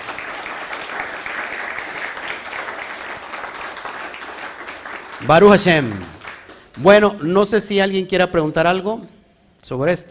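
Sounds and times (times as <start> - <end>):
audience applause: 0.0 - 6.8
speech: 5.2 - 6.2, 6.8 - 10.1.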